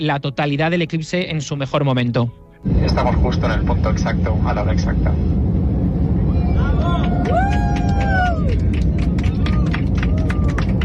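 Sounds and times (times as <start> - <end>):
speech: 0.0 - 5.5
airplane passengers shouting: 6.3 - 8.6
airplane passengers applauding: 6.6 - 10.8.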